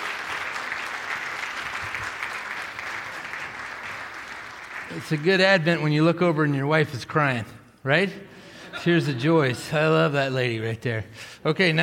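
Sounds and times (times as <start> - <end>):
audience applause: 0.0 - 5.4
speech: 4.9 - 11.8.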